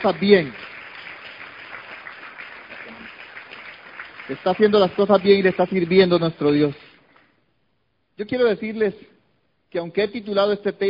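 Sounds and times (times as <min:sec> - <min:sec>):
speech: 0:00.0 - 0:00.6, 0:04.3 - 0:06.8, 0:08.2 - 0:09.1, 0:09.7 - 0:10.8
audience applause: 0:00.0 - 0:05.9.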